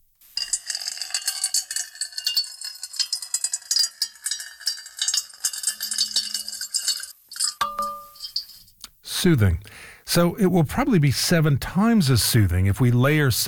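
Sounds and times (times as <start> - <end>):
metal bowl ringing: 0.3 - 8.8
water pouring into a metal bowl: 0.4 - 8.6
speech: 9.2 - 13.4.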